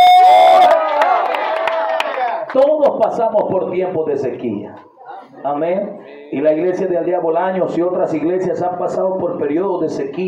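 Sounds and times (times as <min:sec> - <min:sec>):
audience applause and cheering: 0:00.0 - 0:02.6
speech: 0:03.0 - 0:10.2.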